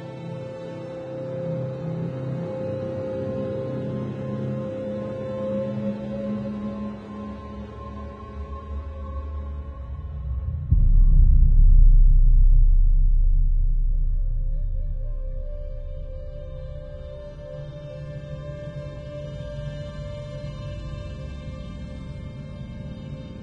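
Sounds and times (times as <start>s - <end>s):
space ambience: 10.1s - 18.6s.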